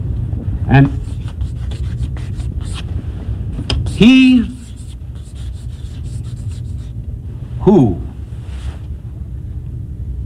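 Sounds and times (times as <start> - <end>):
low steady hum: 0.0 - 10.2
speech: 0.7 - 1.0, 4.0 - 4.5
pen scratching across paper writing an answer: 0.9 - 2.9, 3.8 - 7.0.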